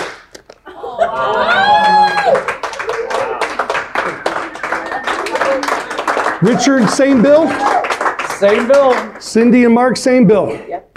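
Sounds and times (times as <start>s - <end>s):
audience clapping once in unison then scattered clapping: 0.0s - 9.9s
audience laughing: 0.6s - 7.8s
rising whoops: 0.7s - 8.0s
speech: 1.2s - 1.5s, 6.4s - 7.8s, 8.4s - 10.7s.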